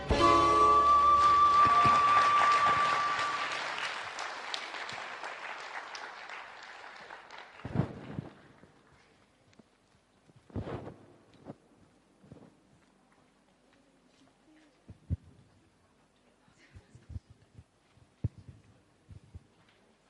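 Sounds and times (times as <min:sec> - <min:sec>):
audience applause: 0:00.8 - 0:09.0.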